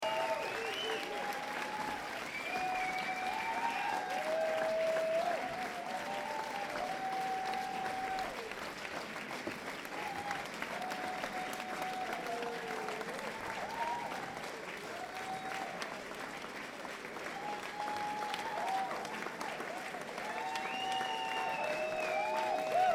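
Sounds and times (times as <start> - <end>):
encore applause: 0.0 - 22.9.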